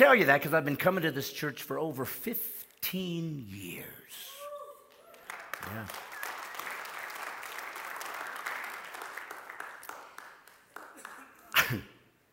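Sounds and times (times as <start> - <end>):
speech: 0.0 - 4.3, 5.7 - 6.1, 11.7 - 11.9
audience clapping: 4.9 - 11.8.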